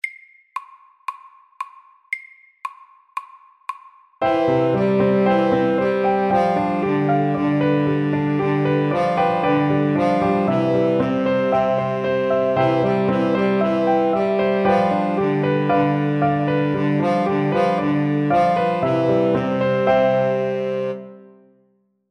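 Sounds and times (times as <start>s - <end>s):
Welsh melody: 4.2s - 21.2s.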